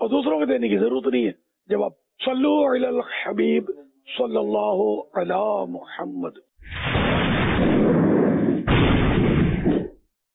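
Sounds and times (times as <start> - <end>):
speech: 0.1 - 7.0
heavy rumbling thunder: 6.7 - 9.9.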